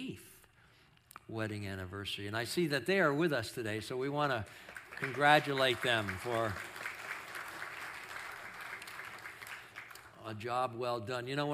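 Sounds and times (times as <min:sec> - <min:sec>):
speech: 0:01.3 - 0:06.7, 0:10.3 - 0:11.5
audience applause: 0:04.5 - 0:10.2.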